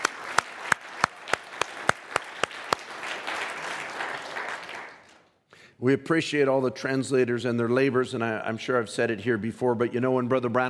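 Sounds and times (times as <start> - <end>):
audience applause: 0.0 - 5.3
speech: 5.8 - 10.6.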